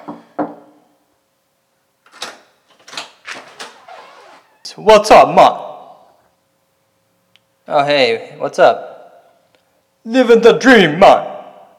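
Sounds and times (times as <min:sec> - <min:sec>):
knocking on a wooden door: 0:00.0 - 0:00.7
speech: 0:04.8 - 0:05.6, 0:07.7 - 0:08.9, 0:10.0 - 0:11.3.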